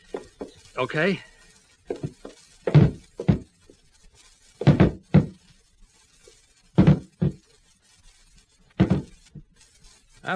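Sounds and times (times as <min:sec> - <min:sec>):
speech: 0:00.8 - 0:01.3
table rammed as a battering ram against wooden door panels: 0:04.6 - 0:05.4, 0:06.8 - 0:07.4, 0:08.8 - 0:09.1.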